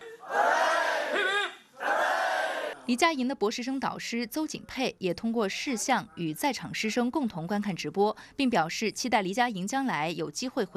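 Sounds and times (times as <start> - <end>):
students at the University of Hong Kong cheering at a Shenzhou spacecraft launch: 0.0 - 2.8
speech: 2.9 - 10.7.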